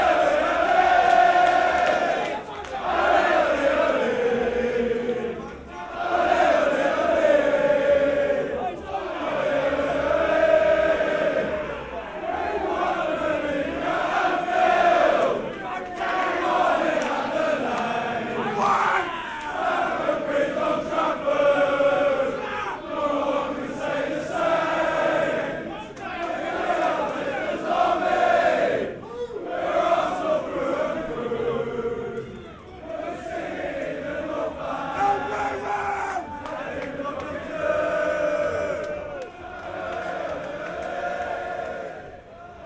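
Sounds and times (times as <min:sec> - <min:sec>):
football fans chanting while marching through a tunnel: 0:00.0 - 0:42.6.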